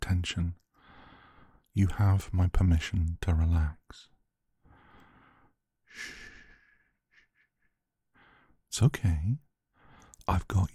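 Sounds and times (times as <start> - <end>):
speech: 0.2 - 0.6, 1.8 - 4.1, 5.9 - 6.2, 8.7 - 9.4, 10.3 - 10.7
slow deep breathing: 0.7 - 1.7, 4.6 - 8.6.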